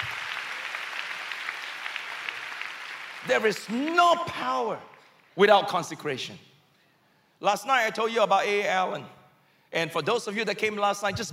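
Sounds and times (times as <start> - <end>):
audience clapping: 0.0 - 5.1
speech: 3.2 - 6.5, 7.4 - 11.3.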